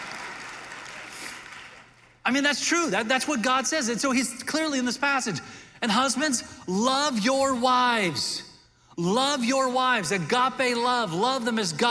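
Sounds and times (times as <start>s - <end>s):
women in audience clapping: 0.0s - 2.2s
speech: 2.3s - 11.9s.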